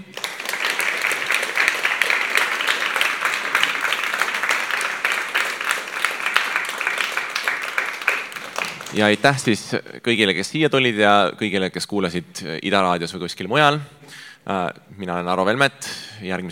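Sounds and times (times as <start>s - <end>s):
audience applause: 0.0s - 9.5s
speech: 9.0s - 16.5s.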